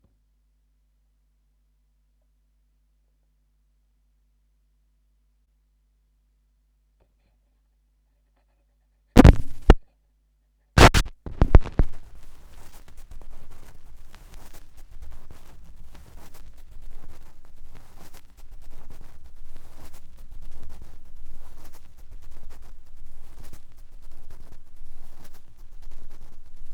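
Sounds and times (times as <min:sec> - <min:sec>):
vinyl record noise: 0:09.2 - 0:09.8, 0:10.8 - 0:26.7.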